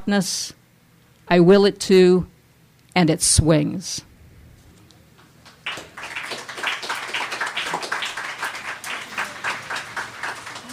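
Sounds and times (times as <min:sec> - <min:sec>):
speech: 0:00.0 - 0:00.6, 0:01.3 - 0:02.3, 0:03.0 - 0:04.1
audience clapping: 0:05.2 - 0:10.7.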